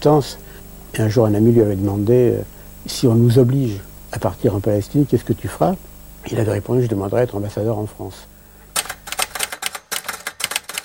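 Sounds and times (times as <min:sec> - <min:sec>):
speech: 0:00.0 - 0:08.3
Olivetti typewriter typing: 0:08.7 - 0:10.8.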